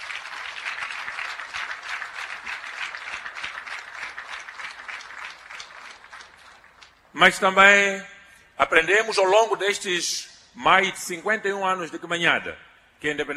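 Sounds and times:
audience applause: 0.0 - 7.1
speech: 7.2 - 13.3.

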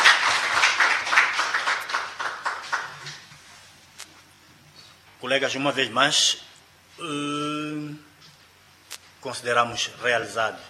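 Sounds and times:
audience applause: 0.0 - 3.2
speech: 5.2 - 8.1, 9.2 - 10.6.

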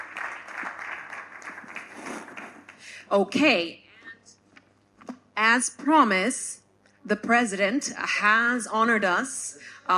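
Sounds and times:
audience round of applause: 0.0 - 2.8
speech: 3.1 - 3.8, 5.4 - 9.9.

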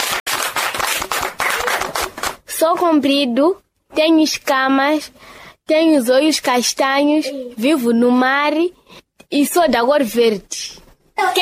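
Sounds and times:
audience applause for a contestant in a children's riddle quiz: 0.0 - 2.4
speech: 2.6 - 11.4.

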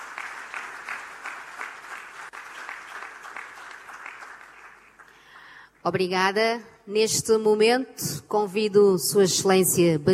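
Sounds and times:
crowd applause: 0.0 - 5.6
speech: 5.8 - 10.1.

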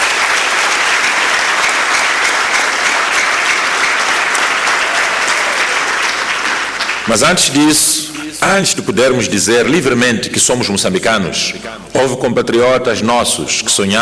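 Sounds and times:
audience applause: 0.0 - 8.3
speech: 7.1 - 14.0.

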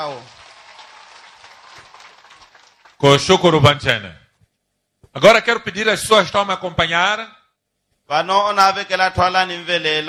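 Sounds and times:
speech: 0.0 - 0.4, 3.0 - 4.2, 5.2 - 7.4, 8.1 - 10.0
crowd applause: 0.0 - 3.1.

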